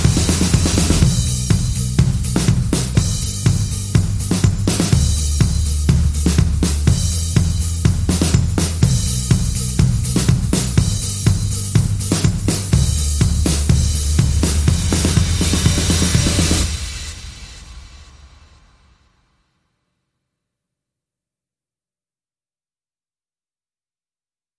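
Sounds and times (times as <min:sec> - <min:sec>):
bass: 0:00.0 - 0:18.9
drums: 0:00.0 - 0:19.3.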